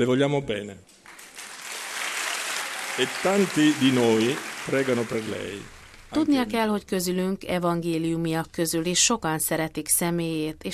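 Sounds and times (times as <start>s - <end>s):
speech: 0.0s - 1.0s, 3.0s - 10.7s
congregation applauding: 1.0s - 6.3s.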